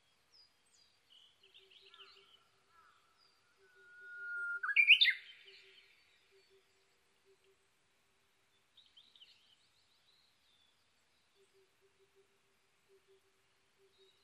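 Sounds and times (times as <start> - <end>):
Japanese bush warbler whistle phrase: 3.8 - 5.3.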